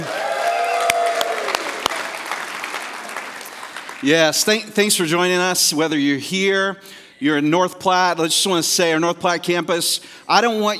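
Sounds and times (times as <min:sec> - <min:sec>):
audience clapping: 0:00.0 - 0:04.2
speech: 0:04.0 - 0:10.7.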